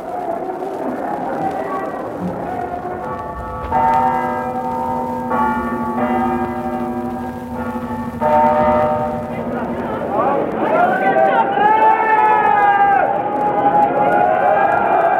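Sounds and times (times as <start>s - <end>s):
steady noisy murmur: 0.0s - 15.1s
Uppsala Cathedral bell striking three o'clock: 2.2s - 11.3s.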